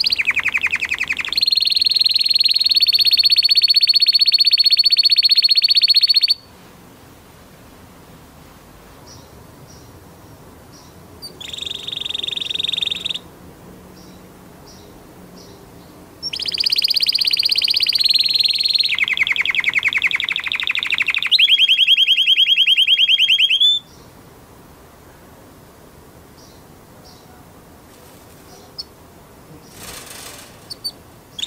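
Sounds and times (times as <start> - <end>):
canary singing: 0.0 - 6.5, 10.7 - 13.3, 16.2 - 24.2, 26.4 - 31.4.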